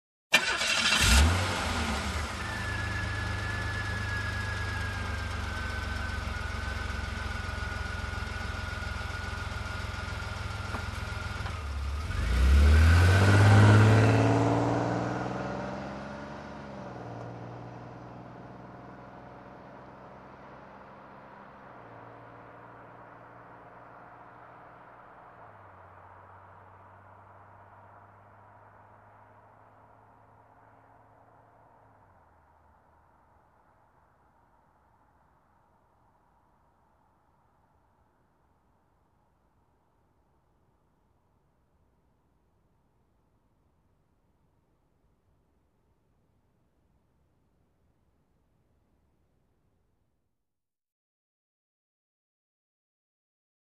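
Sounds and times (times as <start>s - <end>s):
car engine ignition: 0.3s - 26.5s
car driving away: 0.3s - 32.0s.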